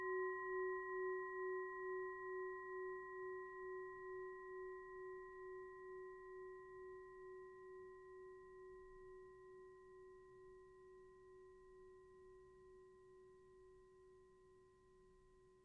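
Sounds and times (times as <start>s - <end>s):
singing bowl ringing: 0.0s - 8.6s.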